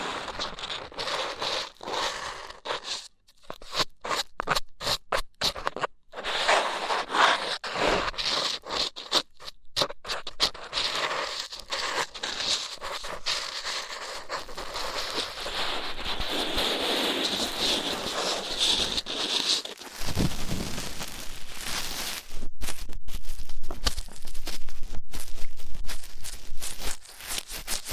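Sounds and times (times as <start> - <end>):
rough ear cleaning scratching: 0.1 - 27.9.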